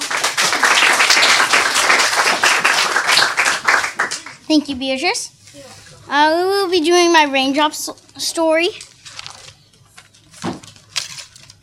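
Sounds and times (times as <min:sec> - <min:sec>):
audience applause: 0:00.0 - 0:04.4
speech: 0:04.5 - 0:08.9.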